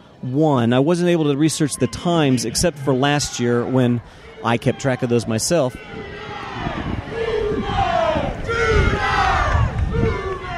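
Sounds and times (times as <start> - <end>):
speech: 0.2 - 6.0
stadium crowd chanting: 2.2 - 10.5.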